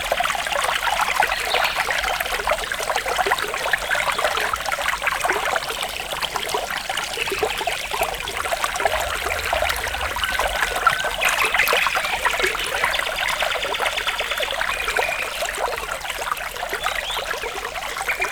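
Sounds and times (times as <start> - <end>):
wind across a stream: 0.0 - 18.3
river flowing: 6.5 - 13.5.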